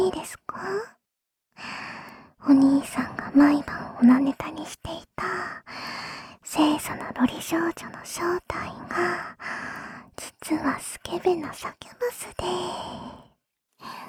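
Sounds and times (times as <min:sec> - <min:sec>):
person whispering ASMR: 0:00.0 - 0:00.9, 0:02.4 - 0:05.7, 0:06.4 - 0:09.4, 0:10.2 - 0:13.2.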